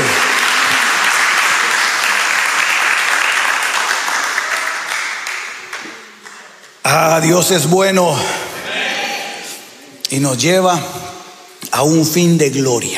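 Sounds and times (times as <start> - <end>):
crowd applause: 0.0 - 6.8
speech: 7.2 - 8.4, 10.1 - 11.0, 11.8 - 12.9.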